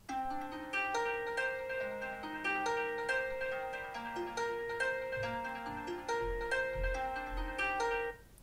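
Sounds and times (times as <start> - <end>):
ringtone: 0.0 - 8.2.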